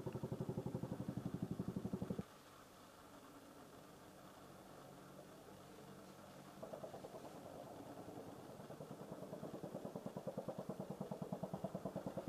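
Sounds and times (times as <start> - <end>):
U.S. Marine AH-1Z Viper attack helicopters: 0.0 - 2.2, 5.1 - 12.2.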